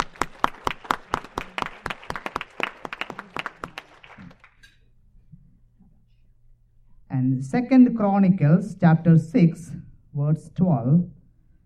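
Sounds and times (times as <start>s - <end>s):
audience clapping hands: 0.0s - 4.7s
speech: 7.4s - 11.2s.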